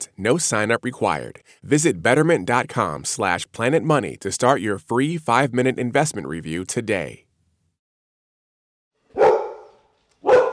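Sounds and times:
speech: 0.2s - 7.3s
dogs barking: 9.1s - 10.5s.

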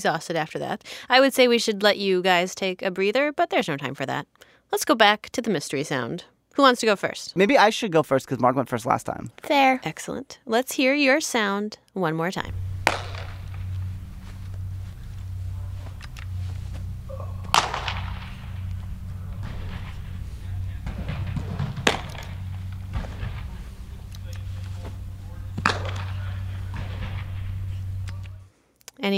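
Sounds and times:
speech: 0.0s - 13.0s
steady low hum: 12.4s - 28.6s
baseball smacking into a glove during indoor catch: 12.5s - 20.2s, 20.8s - 27.2s.

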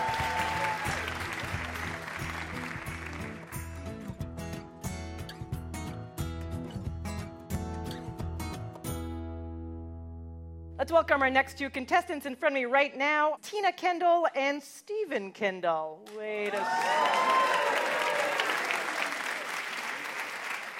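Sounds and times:
audience applauding game show contestants: 0.0s - 4.1s, 16.3s - 20.7s
steady tonal backing music: 0.0s - 9.6s
speech: 10.8s - 17.4s.

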